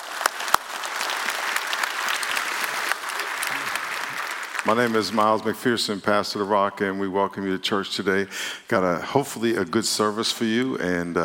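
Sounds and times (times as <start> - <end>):
church congregation clapping to welcome visitors at a service: 0.0 - 5.8
speech: 4.6 - 11.2.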